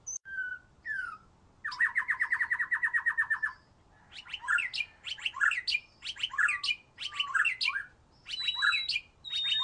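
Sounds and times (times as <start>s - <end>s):
Oriental magpie-robin singing: 0.0s - 9.6s.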